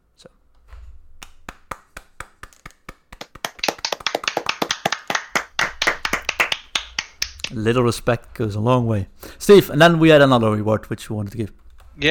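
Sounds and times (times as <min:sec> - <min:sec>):
small group clapping: 0:01.2 - 0:07.8
speech: 0:07.5 - 0:12.1.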